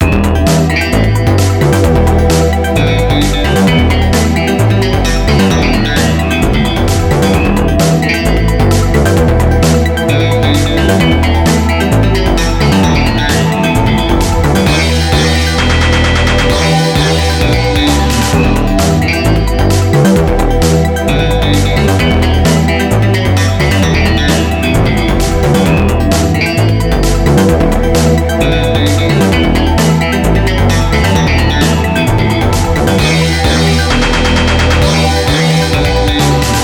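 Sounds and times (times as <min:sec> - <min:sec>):
music beat: 0:00.0 - 0:36.6.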